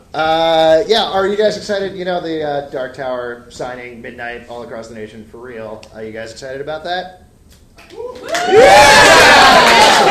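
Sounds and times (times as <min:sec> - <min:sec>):
speech: 0:00.1 - 0:07.2, 0:07.9 - 0:10.1
live show audience cheering: 0:07.9 - 0:10.1
rising whoop: 0:07.9 - 0:10.1.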